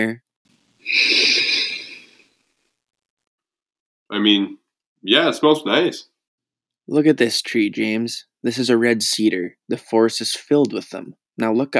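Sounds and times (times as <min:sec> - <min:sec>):
speech: 0:00.0 - 0:00.2, 0:00.8 - 0:01.4, 0:04.1 - 0:06.1, 0:06.9 - 0:11.7
deep breath through the nose sniffing red cedar forest air: 0:00.8 - 0:02.5.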